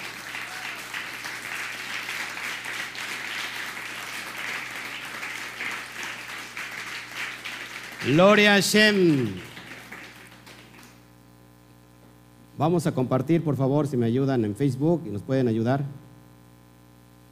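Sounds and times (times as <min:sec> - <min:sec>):
audience applause: 0:00.0 - 0:11.0
speech: 0:08.0 - 0:09.5, 0:12.6 - 0:16.0.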